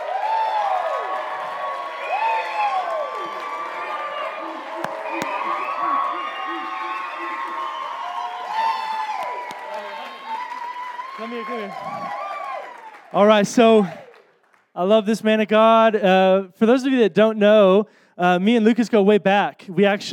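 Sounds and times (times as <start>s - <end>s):
audience clapping and cheering: 0.0s - 15.0s
speech: 11.4s - 12.0s, 13.1s - 14.0s, 14.8s - 20.1s.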